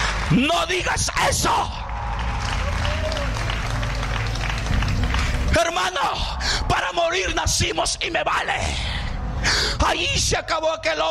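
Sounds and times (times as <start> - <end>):
audience applause: 0.0 - 6.4
speech: 0.3 - 1.9, 5.6 - 11.0.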